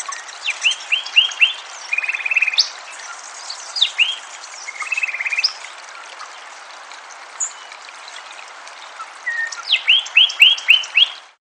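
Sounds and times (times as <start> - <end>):
Sinaloa wren singing: 0.0 - 5.7, 9.2 - 11.2.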